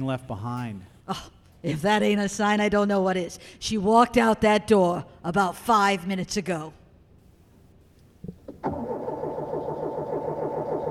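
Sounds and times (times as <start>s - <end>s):
speech: 0.0s - 6.8s
minivan engine cranking but failing to start: 8.5s - 10.9s.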